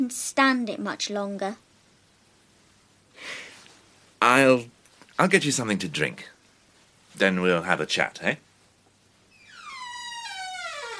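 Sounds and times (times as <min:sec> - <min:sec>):
speech: 0:00.0 - 0:01.7, 0:04.2 - 0:06.3, 0:07.2 - 0:08.5
door hinges creaking: 0:09.3 - 0:10.9.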